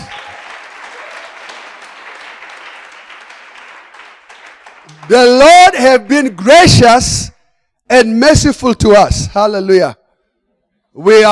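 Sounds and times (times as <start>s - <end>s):
audience clapping: 0.0s - 6.7s
speech: 5.0s - 7.3s, 7.9s - 10.0s, 11.0s - 11.2s.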